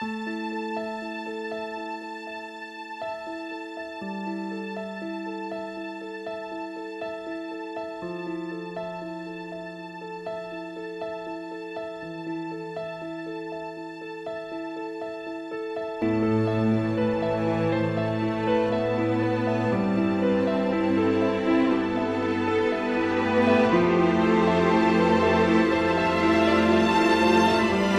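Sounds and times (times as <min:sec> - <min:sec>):
sad piano loop: 0:00.0 - 0:27.9.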